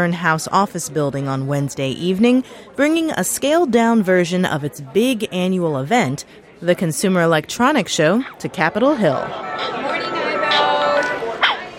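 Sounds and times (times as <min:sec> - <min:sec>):
speech: 0:00.0 - 0:09.8
voices chattering at a consumer electronics showcase: 0:00.0 - 0:11.7
Sony Aibo robotic puppy barking: 0:09.6 - 0:11.7.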